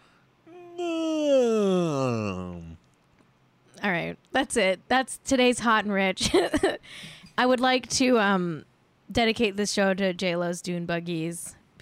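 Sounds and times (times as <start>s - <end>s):
person letting out a big yawn: 0.5s - 2.8s
speech: 4.4s - 11.7s.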